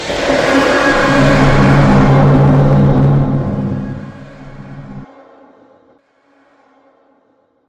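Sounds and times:
dragon roar sound effect: 0.0s - 5.0s.

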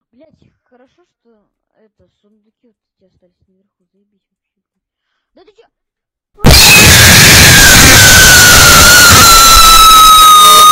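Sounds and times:
distorted Russian child screaming earrape: 6.4s - 10.7s.

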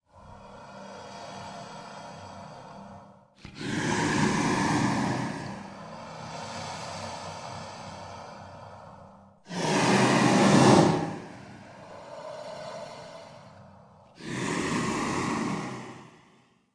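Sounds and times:
breathing: 0.0s - 16.7s.

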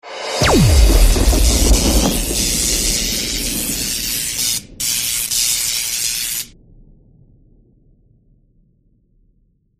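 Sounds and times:
magic thunder strike: 0.3s - 5.1s.

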